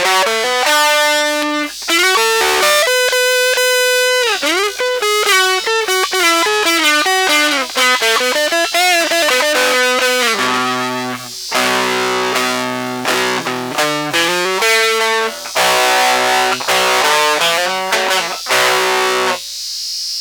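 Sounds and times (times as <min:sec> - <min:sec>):
fuzz test tone: 0:00.0 - 0:19.6.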